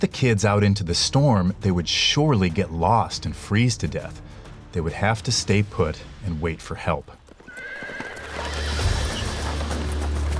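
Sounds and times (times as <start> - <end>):
speech: 0.0 - 7.2
horse hooves clip-clopping: 6.6 - 10.3
horse whinnying: 7.3 - 10.2.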